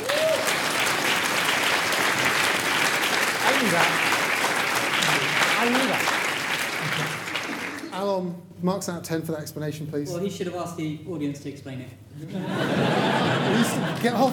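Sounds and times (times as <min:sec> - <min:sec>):
audience clapping: 0:00.0 - 0:08.0, 0:12.9 - 0:14.3
speech: 0:03.6 - 0:04.1, 0:08.1 - 0:14.3
laughter: 0:06.7 - 0:07.9, 0:12.2 - 0:14.3.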